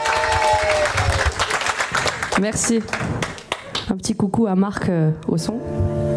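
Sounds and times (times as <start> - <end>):
cheers: 0.0 - 2.2
audience applause: 0.0 - 3.9
speech: 2.4 - 3.1, 3.9 - 6.0.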